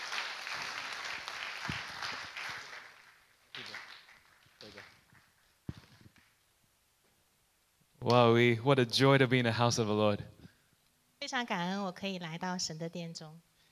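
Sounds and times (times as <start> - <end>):
audience applause welcoming a speaker at a church service: 0.0 - 5.6
speech: 8.1 - 10.4, 11.3 - 13.5.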